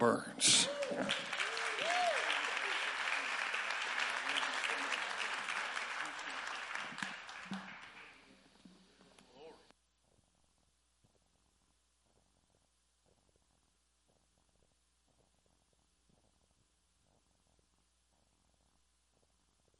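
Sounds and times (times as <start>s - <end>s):
speech: 0.0s - 1.3s
audience applause welcoming a guest speaker: 0.0s - 8.6s.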